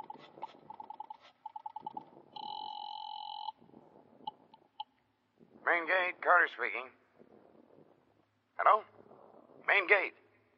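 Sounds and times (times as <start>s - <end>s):
short beeps: 0.0s - 3.6s
telephone ringing on the line: 0.0s - 3.6s
speech: 5.7s - 7.0s, 8.6s - 8.9s, 9.7s - 10.2s.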